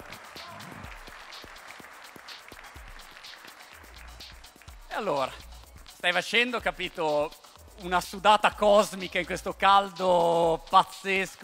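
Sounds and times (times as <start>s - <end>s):
crowd applauding: 0.0s - 5.4s
speech: 5.0s - 11.4s.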